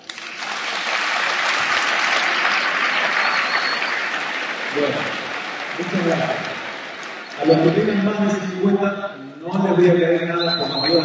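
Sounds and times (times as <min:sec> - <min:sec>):
audience applause: 0:00.0 - 0:08.5
speech: 0:04.8 - 0:05.2, 0:05.8 - 0:06.5, 0:07.4 - 0:11.0.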